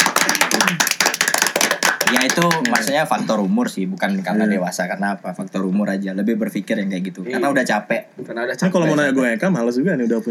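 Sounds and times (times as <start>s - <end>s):
hand clapping: 0.0s - 3.0s
speech: 2.2s - 10.2s.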